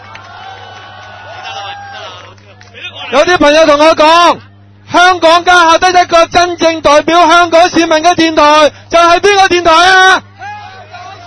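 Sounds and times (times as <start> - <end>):
crowd applause: 0.0 - 3.1
crowd cheering: 0.0 - 3.3, 10.2 - 11.2
speech: 3.1 - 10.3.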